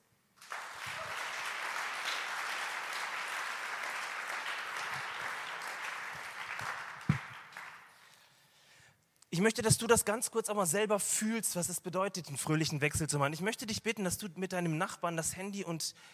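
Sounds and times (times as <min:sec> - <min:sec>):
audience applause: 0:00.4 - 0:08.0
speech: 0:09.4 - 0:16.1.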